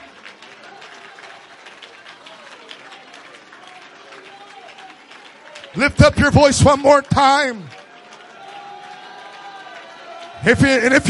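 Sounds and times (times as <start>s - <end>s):
audience clapping: 0.0s - 11.0s
speech: 5.8s - 7.8s, 10.4s - 11.0s.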